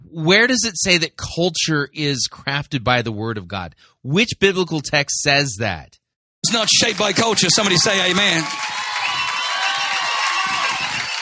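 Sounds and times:
speech: 0.1 - 9.2
audience shouting: 6.4 - 11.1.

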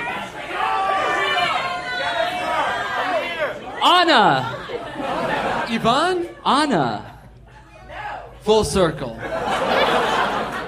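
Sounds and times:
live comedy audience shouting: 0.0 - 7.0
speech: 4.0 - 4.6, 5.7 - 7.1, 8.4 - 9.4
laughter: 4.1 - 7.9, 9.1 - 10.6.

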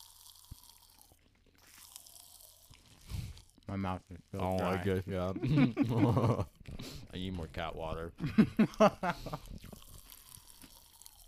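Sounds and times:
eating crackling Pop Rocks candy: 0.0 - 5.3, 8.6 - 11.2
speech: 3.7 - 9.6.

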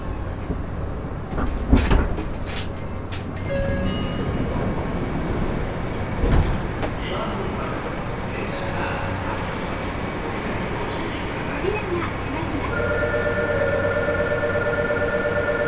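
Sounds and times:
train rumble between Saga and Gofukumachi: 0.0 - 15.6
steady high whine: 12.8 - 15.6.

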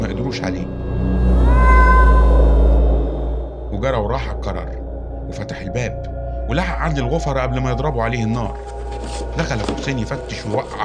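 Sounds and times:
low rumbling drone: 0.0 - 10.8
speech: 0.3 - 0.8, 3.8 - 10.8
cat meowing: 1.3 - 2.6.

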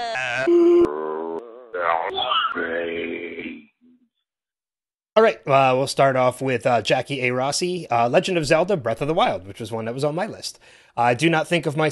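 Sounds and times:
grunting groans: 0.0 - 3.8
faint utterance: 0.0 - 4.1
listener vocal moans and wails segment sound effect: 0.0 - 4.1
speech: 5.2 - 11.8.

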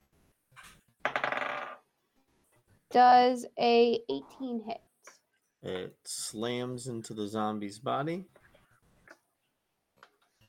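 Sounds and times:
dice shaken and clattering across a hard surface: 1.1 - 1.8
speech: 2.9 - 4.9, 5.6 - 8.4.

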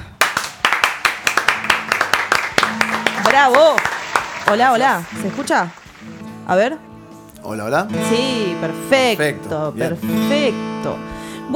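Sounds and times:
audience applause: 0.1 - 6.3
speech: 3.4 - 3.9, 4.5 - 11.5.

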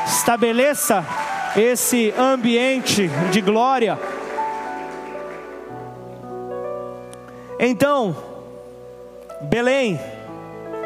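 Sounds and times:
audience applauding: 0.0 - 6.1
sustained keyboard chords: 0.0 - 10.8
speech: 0.2 - 4.2, 7.6 - 8.3, 9.4 - 10.1.

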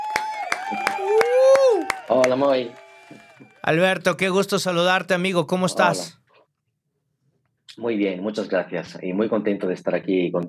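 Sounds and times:
audience applause: 0.0 - 4.3
speech: 2.1 - 6.2, 7.7 - 10.4.

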